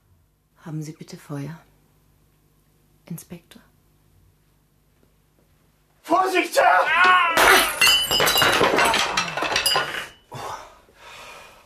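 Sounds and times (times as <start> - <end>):
speech: 0.6 - 1.7, 3.1 - 3.7
table and chairs crashing over: 6.8 - 10.2
glasses shattering: 6.9 - 10.2.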